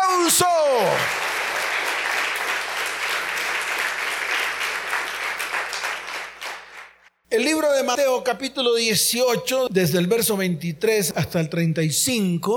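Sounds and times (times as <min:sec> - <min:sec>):
applause: 0:00.0 - 0:07.1
speech: 0:00.3 - 0:01.2, 0:07.4 - 0:12.5.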